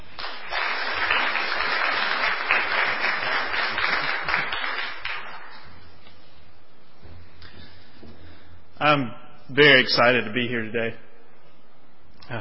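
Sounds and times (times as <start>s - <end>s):
audience applause at a church gathering welcoming a guest speaker: 0.0s - 5.8s
speech: 8.8s - 11.0s.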